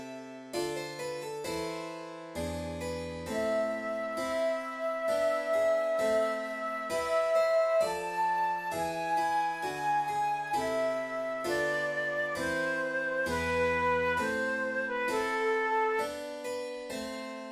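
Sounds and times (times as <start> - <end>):
recorder sonata: 0.6 - 17.4.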